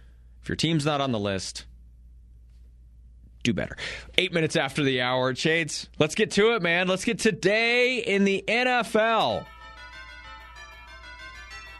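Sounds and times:
speech: 0.5 - 1.7, 3.4 - 9.6
Christmassy musical jingle with bells: 9.2 - 11.7.

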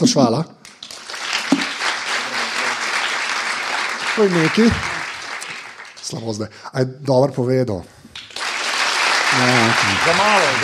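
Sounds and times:
speech: 0.0 - 0.6, 4.2 - 4.9, 6.1 - 8.3, 9.4 - 10.6
audience applause: 0.8 - 6.1, 8.2 - 10.6.

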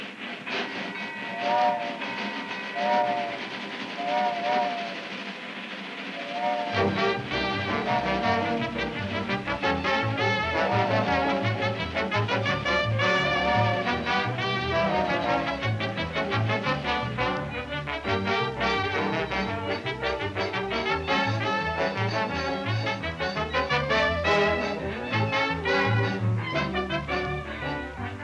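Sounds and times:
train whistle tones: 0.5 - 5.5, 6.2 - 28.2.

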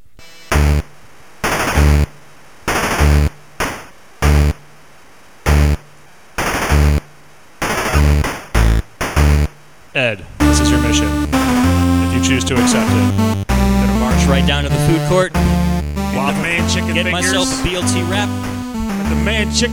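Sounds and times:
TurboGrafx video game music tune: 0.0 - 0.9, 1.7 - 2.1, 2.9 - 3.4, 4.2 - 4.6, 5.5 - 5.8, 6.6 - 7.0, 7.9 - 9.5, 10.4 - 19.7
speech: 10.0 - 11.4, 12.2 - 13.4, 14.2 - 18.5, 19.1 - 19.7.

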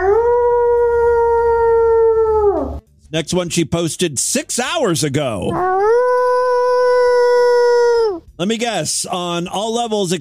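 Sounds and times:
person imitating a wolf howl: 0.0 - 2.8, 5.5 - 8.2
speech: 3.1 - 5.9, 8.4 - 10.1.

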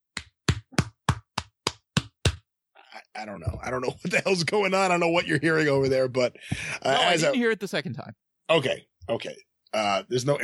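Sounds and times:
one person clapping hands: 0.2 - 2.4
speech: 3.2 - 10.4.

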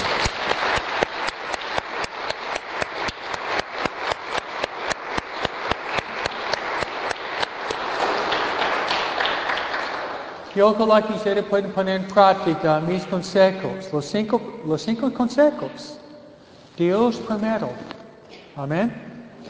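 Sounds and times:
audience applauding: 0.0 - 10.6
speech: 10.6 - 16.0, 16.8 - 17.9, 18.6 - 19.0.

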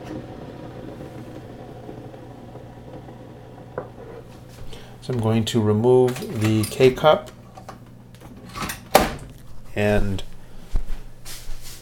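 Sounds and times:
coffee maker pumping water from its reservoir: 0.0 - 10.9
speech: 5.0 - 7.4, 9.8 - 10.3.

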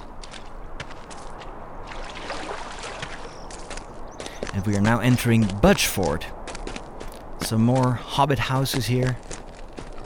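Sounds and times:
wading through shallow river water: 1.1 - 4.2
continuous river water rushing: 1.8 - 3.8
speech: 4.6 - 6.4, 7.5 - 9.3.

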